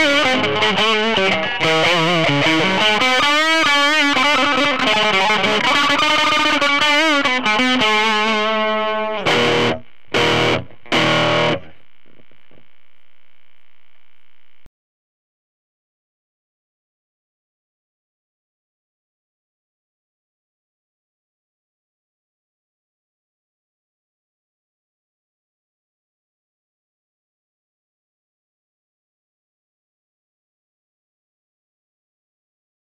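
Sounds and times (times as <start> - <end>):
Stratocaster electric guitar: 0.0 - 14.6.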